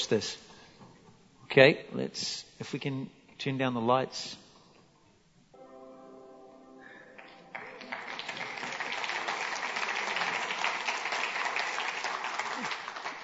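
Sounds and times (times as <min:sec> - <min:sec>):
speech: 0:00.0 - 0:00.5, 0:01.5 - 0:04.4
audience clapping: 0:07.1 - 0:13.2.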